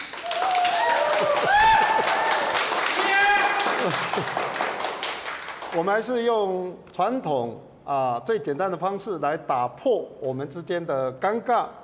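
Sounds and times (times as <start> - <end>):
audience applause: 0.0 - 5.8
speech: 3.9 - 4.4, 5.8 - 11.8.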